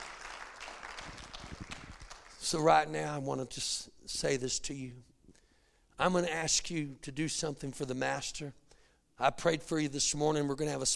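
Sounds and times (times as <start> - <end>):
audience applauding: 0.0 - 2.4
speech: 2.5 - 5.1, 6.0 - 8.6, 9.2 - 10.9.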